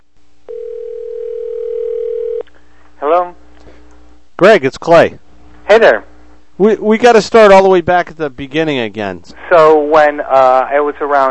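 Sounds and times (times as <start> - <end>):
telephone dial tone: 0.5 - 2.5
speech: 4.4 - 11.3.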